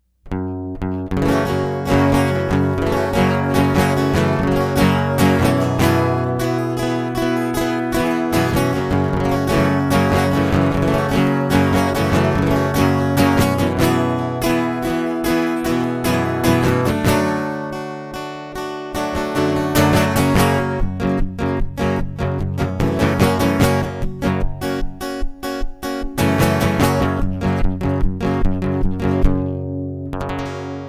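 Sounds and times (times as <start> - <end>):
guitar prelude: 0.2 - 30.8.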